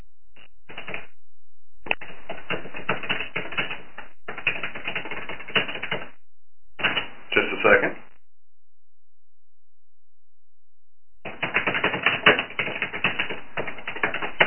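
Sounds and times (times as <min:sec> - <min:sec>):
computer keyboard typing a poll question: 0:00.7 - 0:01.1, 0:01.9 - 0:06.1, 0:06.8 - 0:07.1, 0:11.2 - 0:14.4.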